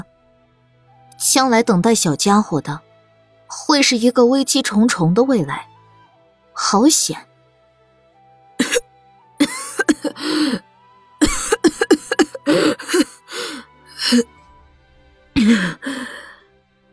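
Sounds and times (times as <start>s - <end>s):
speech: 1.2s - 2.9s, 3.5s - 5.7s, 6.6s - 7.3s, 14.1s - 14.3s
woman coughing in harsh sputtering fits: 8.6s - 8.8s, 9.4s - 10.6s, 11.2s - 14.2s, 15.4s - 16.3s
gasping breaths of a coughing woman: 9.4s - 10.7s, 11.3s - 14.4s, 15.4s - 16.4s.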